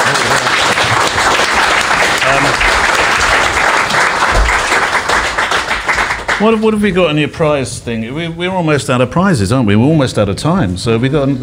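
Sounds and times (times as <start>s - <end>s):
audience round of applause: 0.0s - 6.7s
speech: 6.4s - 11.4s.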